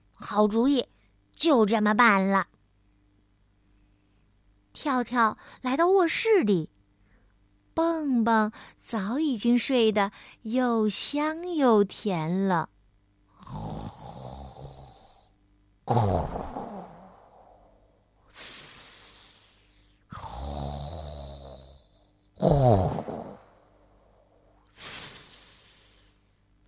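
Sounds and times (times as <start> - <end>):
speech: 0.3 - 2.6, 4.8 - 6.7, 7.8 - 12.7, 13.4 - 14.0, 15.9 - 16.6, 22.4 - 23.1
snoring: 13.4 - 23.5, 24.8 - 26.3.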